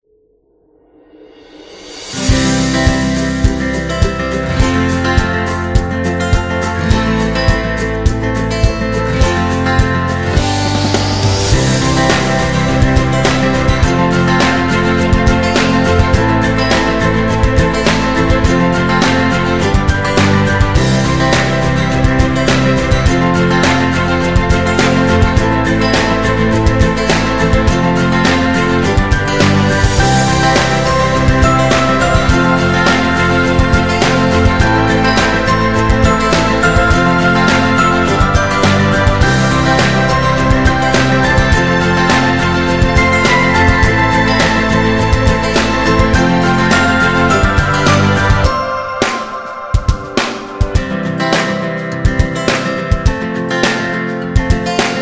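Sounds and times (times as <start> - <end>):
happy guitar music: 2.0 - 55.0.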